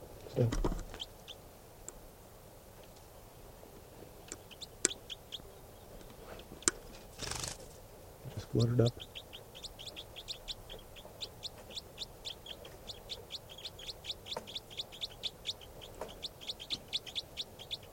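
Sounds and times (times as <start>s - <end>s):
low hum: 0.0s - 17.9s
speech: 0.4s - 0.7s, 8.6s - 9.1s
high-pitched bird calls: 4.4s - 7.4s, 8.4s - 17.9s.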